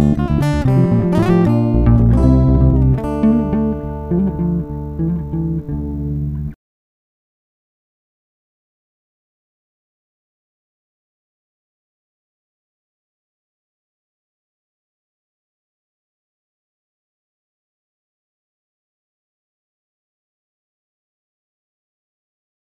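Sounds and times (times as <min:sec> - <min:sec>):
bass: 0:00.0 - 0:06.6.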